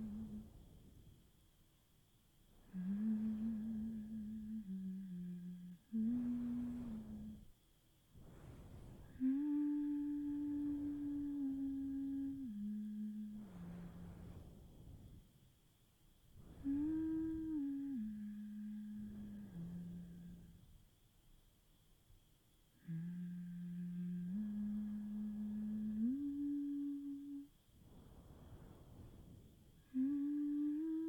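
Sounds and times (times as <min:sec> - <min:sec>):
person humming: 0:00.0 - 0:00.5, 0:02.6 - 0:07.5, 0:09.0 - 0:14.3, 0:16.5 - 0:20.6, 0:22.8 - 0:27.6, 0:29.8 - 0:31.0
crickets: 0:00.0 - 0:31.0.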